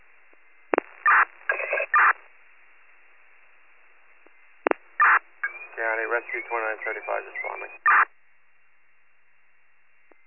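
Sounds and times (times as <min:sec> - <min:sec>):
radio click: 0:00.3 - 0:02.3, 0:04.2 - 0:08.1
radio hiss: 0:00.3 - 0:08.1
radio dispatch alert tones: 0:00.8 - 0:02.2, 0:04.7 - 0:08.1
speech: 0:06.1 - 0:08.1.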